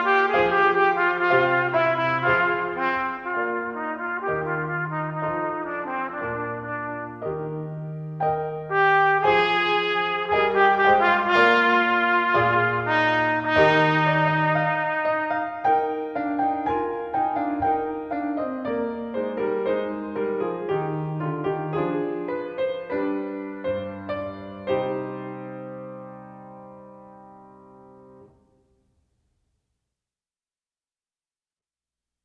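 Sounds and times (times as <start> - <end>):
trumpet playing an aria: 0.0 - 25.6.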